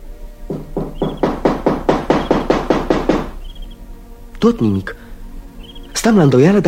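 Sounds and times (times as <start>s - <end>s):
knocking on a wooden door: 0.5s - 3.7s
speech: 4.4s - 5.0s, 6.0s - 6.6s.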